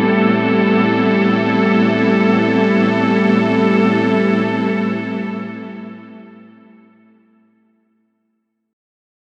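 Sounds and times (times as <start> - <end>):
minimoog synthesizer: 0.0 - 7.9.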